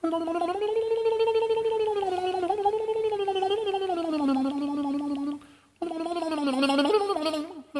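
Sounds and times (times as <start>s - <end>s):
man's voice imitating a mandolin: 0.0s - 7.7s.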